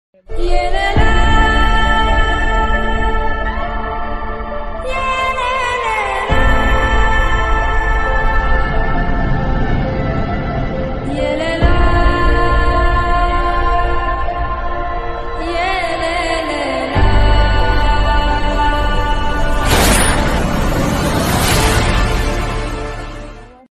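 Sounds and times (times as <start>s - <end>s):
movie background music ringtone: 0.2s - 23.7s.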